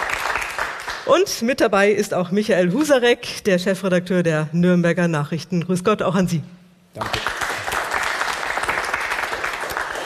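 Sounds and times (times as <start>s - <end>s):
studio audience applause: 0.0s - 1.0s, 7.0s - 10.0s
speech: 1.1s - 7.3s.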